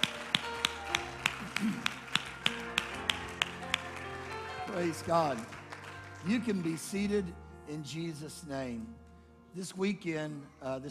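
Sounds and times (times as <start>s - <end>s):
audience clapping hands: 0.0s - 7.0s
speech: 4.8s - 5.6s, 6.2s - 10.8s.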